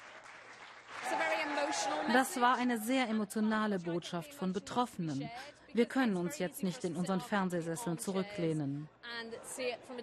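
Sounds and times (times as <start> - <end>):
crowd applauding: 0.0 - 2.7
speech: 1.8 - 10.0.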